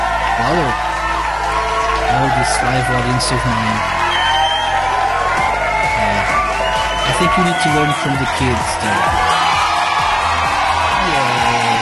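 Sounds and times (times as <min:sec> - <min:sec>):
audience applause: 0:00.0 - 0:11.8
speech: 0:00.4 - 0:00.9, 0:02.1 - 0:04.0, 0:07.1 - 0:09.3.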